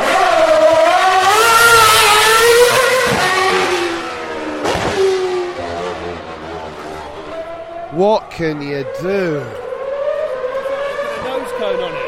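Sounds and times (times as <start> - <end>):
race car engine revving at a motor racing circuit after front wing damage: 0.0 - 12.0
speech: 8.0 - 9.6, 11.6 - 12.0.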